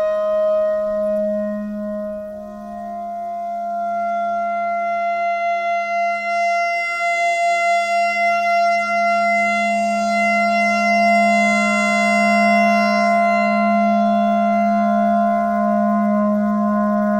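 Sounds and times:
clarinet notes: 0:00.0 - 0:17.1
noise: 0:00.0 - 0:17.1.

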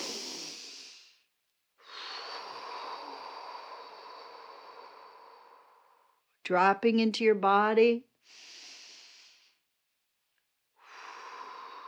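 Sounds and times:
deep cleansing breaths: 0:00.0 - 0:06.3, 0:08.2 - 0:09.7, 0:10.8 - 0:11.8
speech: 0:06.5 - 0:08.5.

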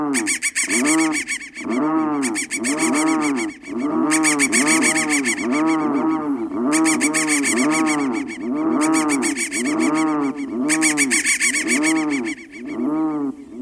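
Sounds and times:
crow giving harsh caws: 0:00.1 - 0:13.4.

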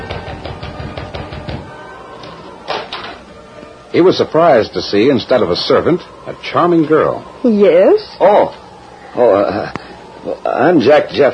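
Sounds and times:
knuckles knocking on a wooden door: 0:00.0 - 0:01.7
speech: 0:03.9 - 0:08.6, 0:09.2 - 0:11.3.

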